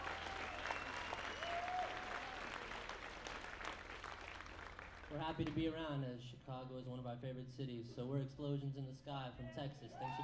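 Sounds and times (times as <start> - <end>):
audience applause: 0.0 - 5.6
speech: 5.1 - 10.2.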